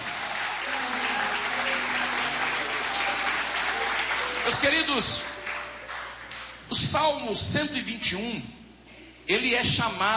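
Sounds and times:
audience applauding: 0:00.0 - 0:06.6
speech: 0:04.4 - 0:05.3, 0:06.7 - 0:08.6, 0:09.3 - 0:10.1.

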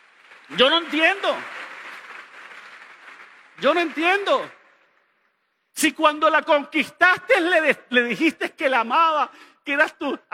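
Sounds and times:
audience applause: 0:00.0 - 0:05.0
speech: 0:00.5 - 0:01.6, 0:03.6 - 0:04.6, 0:05.8 - 0:10.3.

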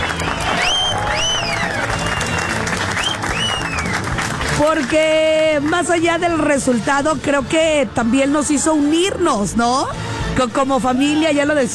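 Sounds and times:
applause: 0:00.0 - 0:06.0
speech: 0:04.6 - 0:11.7.

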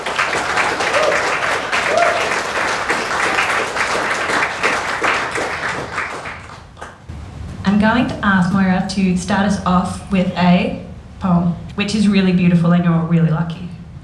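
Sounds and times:
audience applause: 0:00.0 - 0:07.1
speech: 0:07.8 - 0:13.7.

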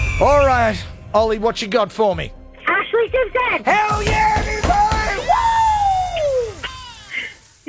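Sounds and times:
speech: 0:00.2 - 0:02.4, 0:03.0 - 0:04.3
person screaming excitedly: 0:04.2 - 0:07.4.

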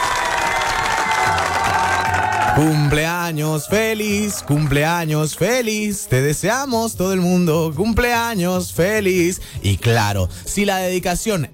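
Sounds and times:
crowd applauding and cheering: 0:00.0 - 0:06.0
speech: 0:02.6 - 0:11.5.

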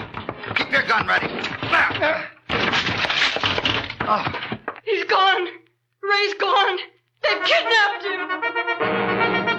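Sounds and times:
locked door being broken down: 0:00.0 - 0:04.8
speech: 0:00.7 - 0:02.4, 0:04.1 - 0:09.4.

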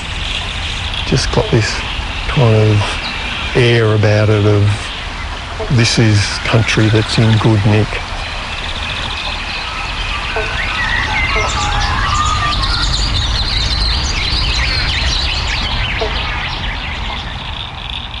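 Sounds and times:
banjo frogs or bobble bonks calling, several species: 0:00.0 - 0:18.1
speech: 0:01.1 - 0:04.8, 0:05.6 - 0:08.1.

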